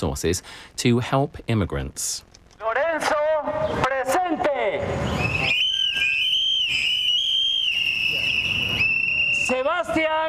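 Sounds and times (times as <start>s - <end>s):
speech: 0.0s - 4.0s
crowd blowing whistles at a vigil: 4.8s - 9.7s.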